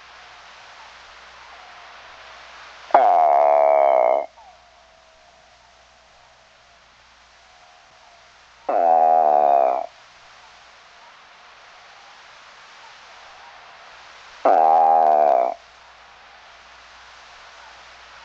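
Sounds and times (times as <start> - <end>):
Eastern spadefoot calling with nasal buzzy groans: 2.9 - 10.0, 14.4 - 15.7.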